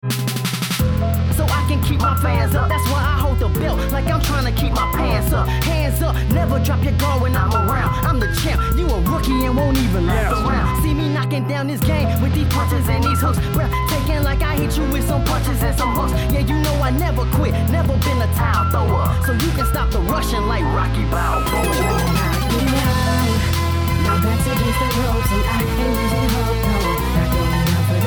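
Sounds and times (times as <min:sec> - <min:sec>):
hip hop music: 0:00.0 - 0:28.0.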